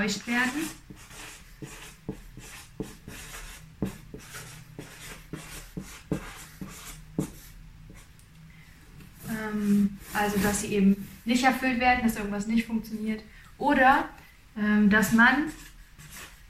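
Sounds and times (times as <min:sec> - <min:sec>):
speech: 0:00.0 - 0:01.8, 0:09.6 - 0:15.7
neat handwriting strokes: 0:00.2 - 0:08.1, 0:15.5 - 0:16.4.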